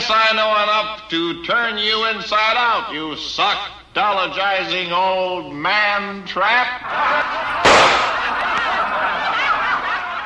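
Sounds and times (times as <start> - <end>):
speech: 0.1 - 9.4
theatre audience laughing: 6.8 - 10.2
gunshot fired at President Lincoln in a theatre: 7.7 - 8.4.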